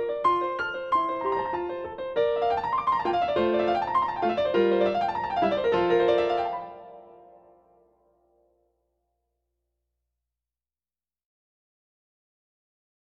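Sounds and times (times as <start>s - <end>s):
piano sonata: 0.0s - 8.4s.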